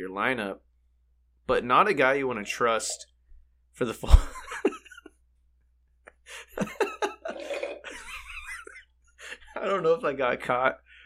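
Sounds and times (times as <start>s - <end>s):
speech: 0.2s - 0.7s, 1.5s - 3.1s, 3.8s - 4.4s, 6.3s - 6.9s, 9.6s - 10.8s
slurping coffee: 7.2s - 7.9s.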